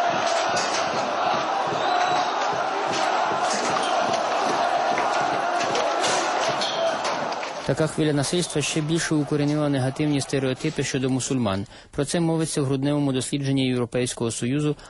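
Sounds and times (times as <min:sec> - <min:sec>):
protesters attacking diplomatic missions in Syria: 0:00.0 - 0:11.4
speech: 0:07.7 - 0:14.8.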